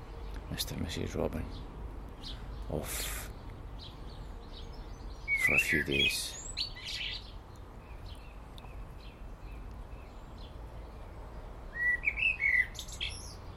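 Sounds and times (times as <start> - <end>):
blackbird singing on top of a telegraph pole: 0.0 - 13.5
speech: 0.5 - 3.2, 5.5 - 6.4.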